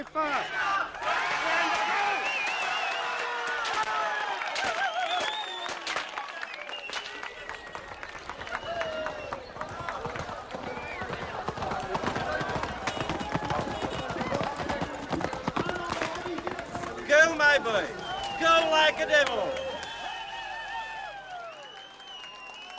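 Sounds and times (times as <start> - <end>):
crowd surging forward shouting and cheering: 0.0 - 22.7
scattered claps: 1.6 - 20.0
running feet: 7.3 - 19.7
horse galloping past: 8.4 - 17.9.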